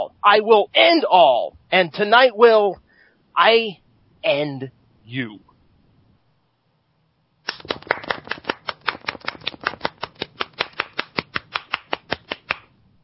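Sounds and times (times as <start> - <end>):
speech: 0.2 - 2.8, 3.4 - 5.5
golf clap: 7.4 - 12.7.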